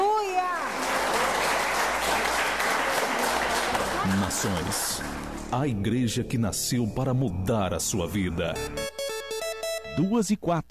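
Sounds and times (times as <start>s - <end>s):
audience applause: 0.0s - 5.6s
speech: 4.3s - 8.8s, 10.0s - 10.6s.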